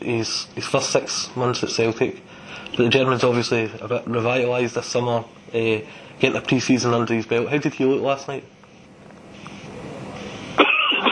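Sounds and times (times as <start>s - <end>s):
speech: 0.0s - 8.6s
harsh cough from something caught in the back of the throat: 10.6s - 11.1s.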